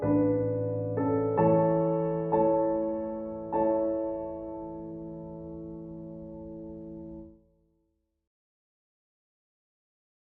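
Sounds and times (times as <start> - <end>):
piano prelude in A major: 0.0 - 7.4.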